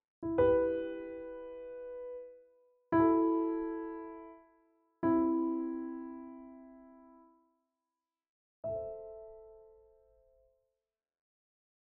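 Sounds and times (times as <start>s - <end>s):
improvised piano with bad ending: 0.2s - 7.2s.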